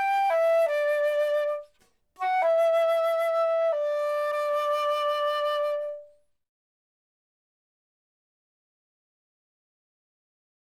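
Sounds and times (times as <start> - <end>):
flute instrumental: 0.0 - 6.1.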